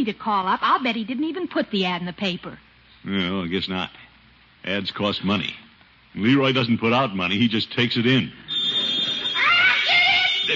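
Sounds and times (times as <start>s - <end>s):
speech: 0.0s - 8.4s
telephone ringing with electronic trill: 8.5s - 10.5s.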